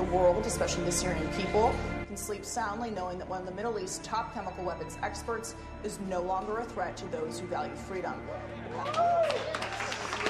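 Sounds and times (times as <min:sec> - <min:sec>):
speech: 0:00.1 - 0:09.8
crowd cheering: 0:08.6 - 0:10.2.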